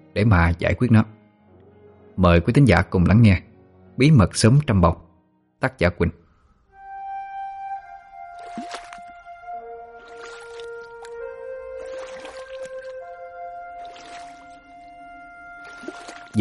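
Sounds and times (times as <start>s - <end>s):
speech: 0.2s - 1.2s, 2.2s - 5.0s, 5.6s - 6.2s
water sloshing around a small sampan drifting on a wide river at night: 8.2s - 16.3s.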